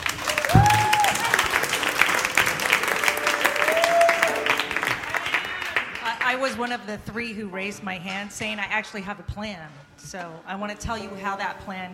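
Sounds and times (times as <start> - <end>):
audience applause welcoming a sea captain speaker to the stage: 0.0 - 6.2
speech: 6.5 - 11.9.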